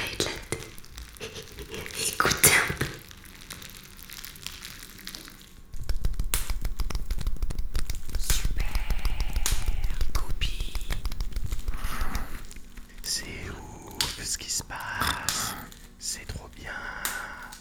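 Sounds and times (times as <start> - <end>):
bubble wrap being handled: 0.0 - 17.5.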